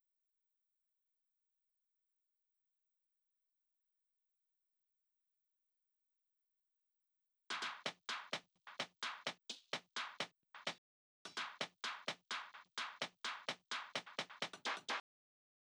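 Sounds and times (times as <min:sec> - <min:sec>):
drum loop with hi-hat percussion: 0:07.5 - 0:15.0.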